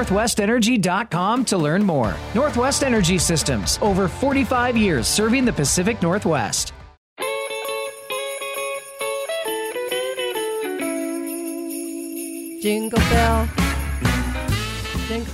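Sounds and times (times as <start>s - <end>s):
speech: 0.0s - 6.8s, 12.6s - 13.6s
bright jingling bells: 7.2s - 15.3s
reedy saxophone line in a Christmas rock song: 7.2s - 15.3s.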